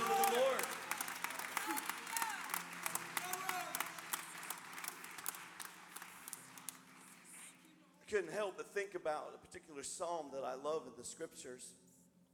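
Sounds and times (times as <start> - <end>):
scattered shouts and voices in a crowd: 0.0 - 0.9, 1.5 - 3.9
crowd applauding: 0.0 - 7.7
speech: 8.1 - 11.8.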